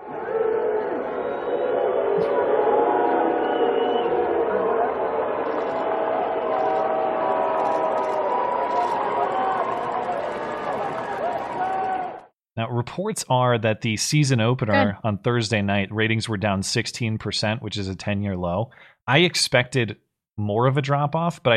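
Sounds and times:
large stadium crowd booing: 0.0s - 12.3s
speech: 12.8s - 21.5s.

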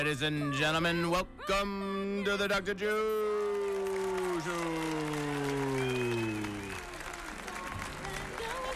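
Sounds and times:
speech: 0.1s - 3.4s, 4.4s - 5.1s
audience applause: 3.1s - 8.7s.

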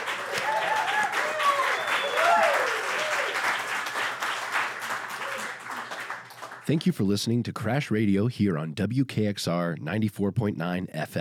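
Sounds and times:
cheers and whoops: 0.0s - 3.6s, 5.2s - 5.9s
audience applause for the guitarist: 0.0s - 6.7s
speech: 6.7s - 11.1s.

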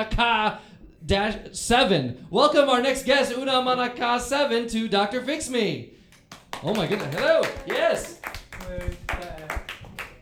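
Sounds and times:
speech: 0.0s - 6.0s, 6.6s - 9.0s
tepid applause: 6.1s - 10.2s.

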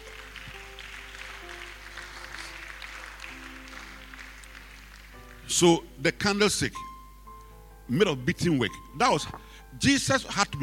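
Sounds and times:
audience clapping: 0.0s - 5.6s
speech: 5.5s - 6.9s, 7.9s - 10.6s.

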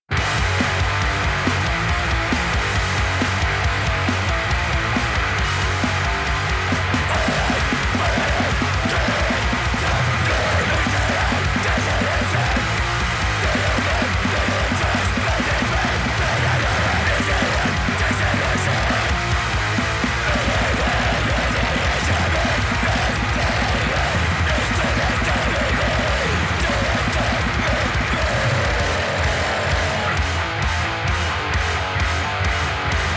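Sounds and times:
grindcore hardcore punk song: 0.0s - 33.1s.

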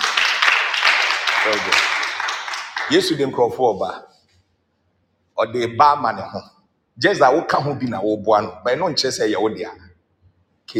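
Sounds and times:
group applauding: 0.0s - 3.4s
speech: 1.4s - 2.0s, 2.9s - 4.1s, 5.4s - 9.9s.

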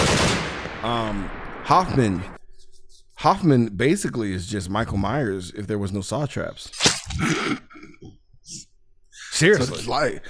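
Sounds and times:
machine gun turret firing in a Saw film: 0.0s - 0.8s
speech: 0.8s - 2.4s, 3.2s - 8.7s, 9.4s - 10.2s.

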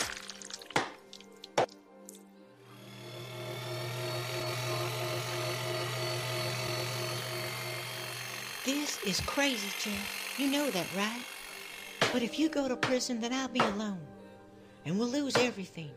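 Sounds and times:
meat grinder running: 2.6s - 12.3s
speech: 8.7s - 11.3s, 12.1s - 14.1s, 14.8s - 15.9s.

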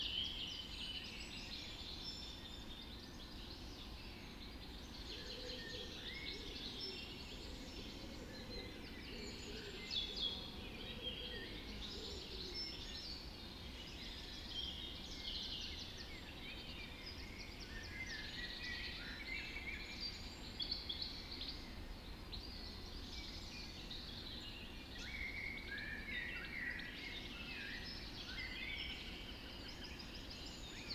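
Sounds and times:
birds singing in a dawn chorus: 0.0s - 30.9s.

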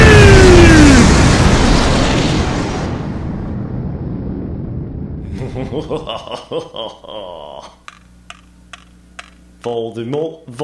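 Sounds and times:
pipe bomb explosion: 0.0s - 6.3s
laughter: 5.3s - 7.7s
speech: 5.8s - 7.8s, 9.6s - 10.6s.

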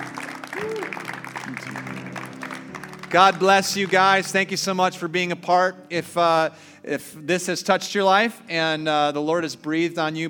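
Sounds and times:
audience clapping: 0.0s - 4.7s
speech: 0.6s - 2.2s, 3.1s - 10.2s.

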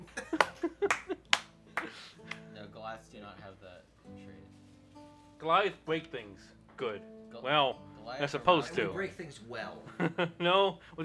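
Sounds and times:
laughter: 0.0s - 2.4s, 9.6s - 11.0s
hands clapping: 0.0s - 2.7s
speech: 2.9s - 11.0s.

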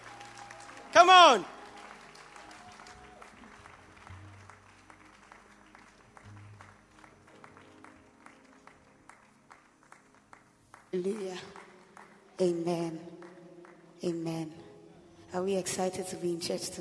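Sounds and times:
audience applause: 0.0s - 12.2s
speech: 1.0s - 1.6s, 11.0s - 11.6s, 12.4s - 13.1s, 14.0s - 14.6s, 15.3s - 16.7s.

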